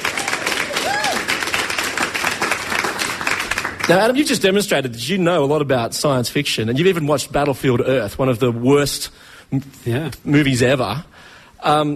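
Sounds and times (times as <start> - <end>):
applause: 0.0 - 4.4
speech: 3.9 - 11.9.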